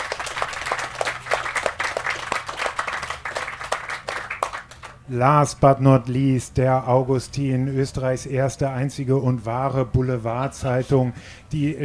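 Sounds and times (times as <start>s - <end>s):
audience applause: 0.0s - 5.0s
speech: 5.1s - 11.8s.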